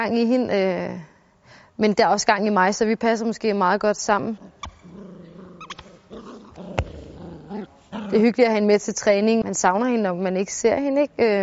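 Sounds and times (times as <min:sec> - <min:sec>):
speech: 0:00.0 - 0:05.1, 0:08.1 - 0:11.4
dog growling: 0:04.4 - 0:08.4.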